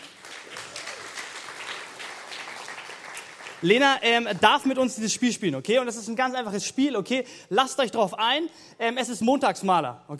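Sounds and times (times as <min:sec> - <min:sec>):
audience applause: 0:00.0 - 0:03.8
speech: 0:03.6 - 0:10.1.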